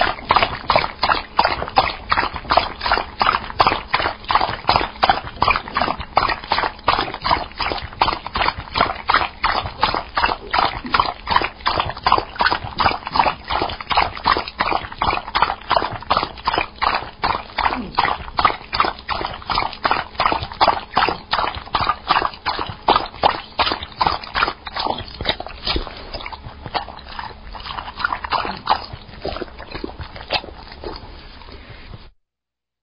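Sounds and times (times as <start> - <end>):
dog lapping water: 0.0 - 32.1.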